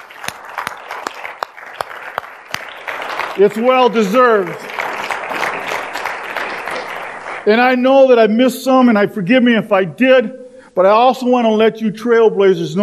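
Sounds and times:
round of applause from audience: 0.0s - 7.8s
speech: 3.4s - 4.7s, 7.4s - 12.8s.

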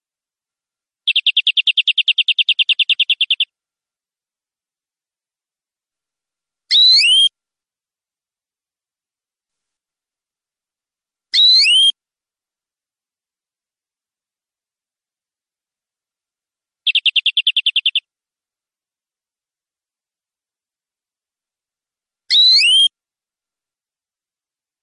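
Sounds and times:
canary singing: 1.1s - 3.5s, 6.7s - 7.3s, 11.4s - 11.9s, 16.8s - 18.1s, 22.3s - 22.9s.

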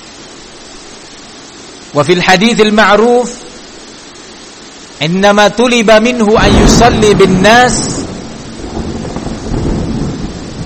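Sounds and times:
rain during a storm: 0.0s - 10.6s
speech: 1.9s - 3.4s, 5.0s - 8.0s
thunder during a storm: 6.0s - 10.6s.

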